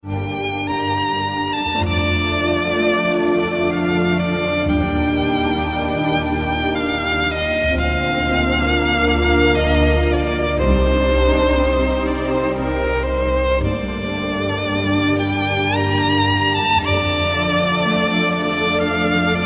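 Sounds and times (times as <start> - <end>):
violin love theme: 0.0 - 19.4.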